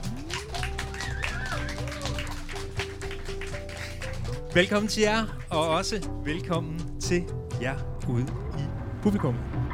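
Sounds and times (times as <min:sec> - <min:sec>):
audience clapping: 0:00.0 - 0:05.8
speech: 0:04.5 - 0:08.4, 0:09.0 - 0:09.6.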